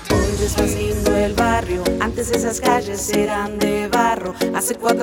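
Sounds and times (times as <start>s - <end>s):
jingle: 0.1s - 4.9s.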